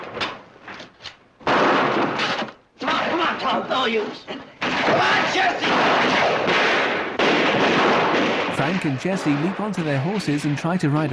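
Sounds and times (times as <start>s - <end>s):
gunshots in an ambush: 1.4s - 4.0s, 4.6s - 11.0s
speech: 3.7s - 6.5s, 8.6s - 11.1s.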